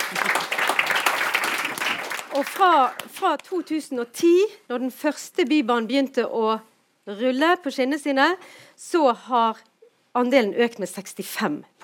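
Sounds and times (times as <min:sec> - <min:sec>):
audience applause: 0:00.0 - 0:03.1
speech: 0:02.4 - 0:11.8.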